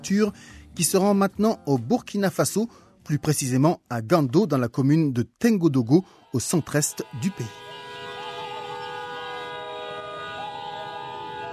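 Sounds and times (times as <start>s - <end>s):
speech: 0.0s - 7.7s
crowd cheering: 5.8s - 11.5s
car horns honking: 6.4s - 11.5s.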